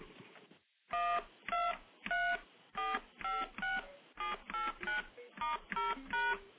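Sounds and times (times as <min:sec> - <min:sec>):
standard DTMF touch tones: 0:00.9 - 0:06.5.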